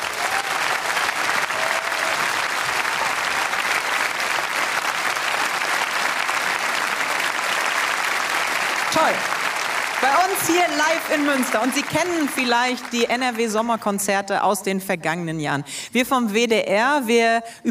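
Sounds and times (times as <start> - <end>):
audience applause: 0.0 - 13.6
speech: 10.4 - 17.6.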